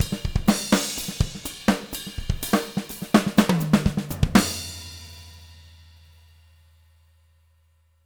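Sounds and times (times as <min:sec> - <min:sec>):
live drums ending: 0:00.0 - 0:06.2.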